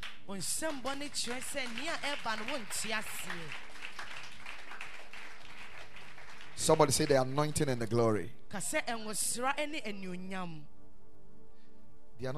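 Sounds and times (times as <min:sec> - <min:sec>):
audience clapping: 0:00.0 - 0:08.0
speech: 0:00.3 - 0:03.7, 0:06.6 - 0:10.7, 0:12.2 - 0:12.3.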